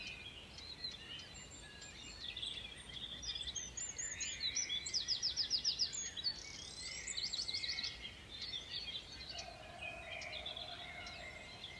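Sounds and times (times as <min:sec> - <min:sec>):
birds singing at dawn: 0:00.0 - 0:11.7.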